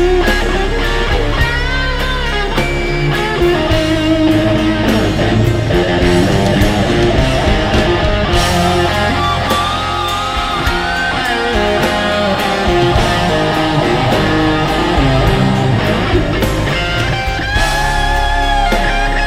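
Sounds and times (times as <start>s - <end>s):
solo through Sovtek Big Muff fuzz pedal from inner ear monitor: 0.0s - 19.2s.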